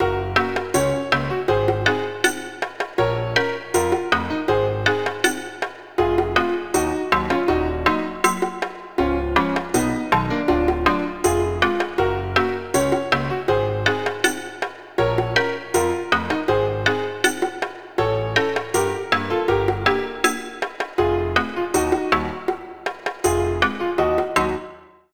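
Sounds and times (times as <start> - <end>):
chiptune music: 0.0 - 24.9.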